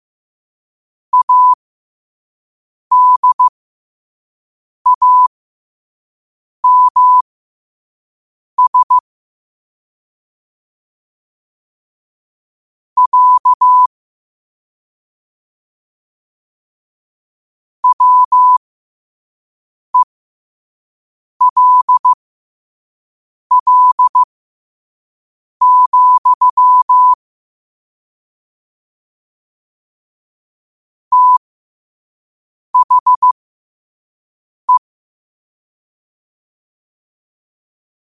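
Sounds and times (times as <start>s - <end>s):
morse code at 5 wpm: 1.2s - 1.6s, 2.9s - 3.5s, 4.9s - 5.3s, 6.6s - 7.2s, 8.6s - 9.0s, 13.0s - 13.9s, 17.8s - 18.6s, 21.4s - 22.2s, 23.5s - 24.3s, 25.6s - 27.2s, 31.1s - 31.4s, 32.8s - 33.4s.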